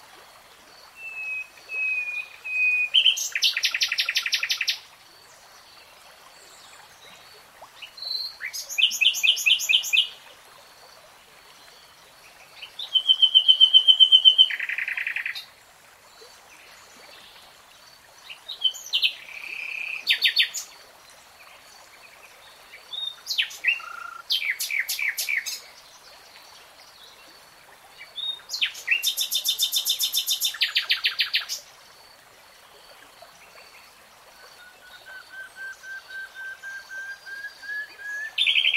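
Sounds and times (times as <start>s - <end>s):
nightingale song: 0.9s - 4.9s, 7.7s - 10.2s, 12.2s - 15.5s, 18.2s - 20.8s, 21.4s - 26.1s, 28.0s - 31.7s, 33.4s - 38.7s.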